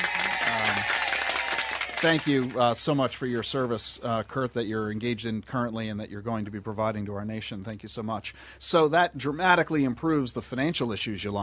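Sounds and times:
crowd applause: 0.0 - 2.9
speech: 2.0 - 11.4.

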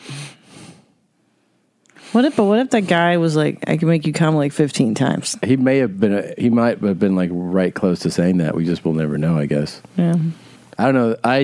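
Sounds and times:
heavy breathing: 0.0 - 1.0
speech: 2.1 - 11.4.

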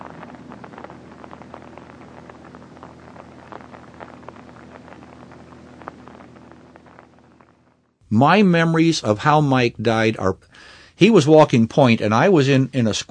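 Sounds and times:
steady rain falling at night: 0.0 - 9.1
speech: 8.1 - 13.0.

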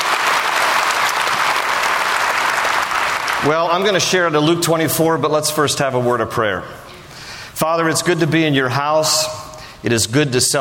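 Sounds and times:
church audience applause: 0.0 - 4.0
speech: 3.4 - 6.8, 7.6 - 10.6.

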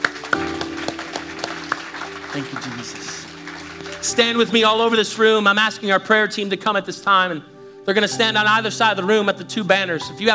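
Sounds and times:
audience clapping in a steady brisk rhythm: 0.0 - 5.0
speech: 2.3 - 3.2, 4.0 - 10.3.

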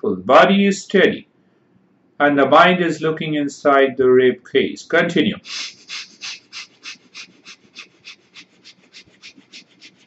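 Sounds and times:
speech: 0.0 - 1.3, 2.2 - 6.0
quick, short breaths in a guided breathing exercise: 5.4 - 10.0.

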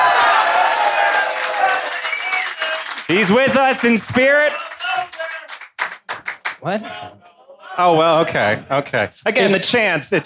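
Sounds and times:
audience applause: 0.0 - 6.6
speech: 3.1 - 4.6, 6.6 - 7.2, 7.8 - 10.2.

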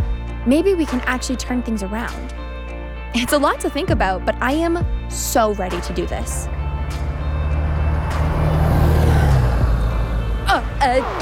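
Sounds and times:
speech: 0.4 - 2.4, 3.1 - 6.6, 10.8 - 11.1
traffic noise: 5.5 - 11.1
bus engine rumbling past: 6.0 - 11.1.

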